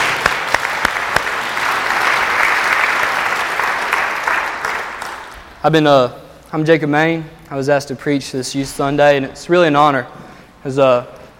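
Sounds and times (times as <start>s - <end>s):
audience applause: 0.0s - 5.6s
speech: 5.6s - 11.2s.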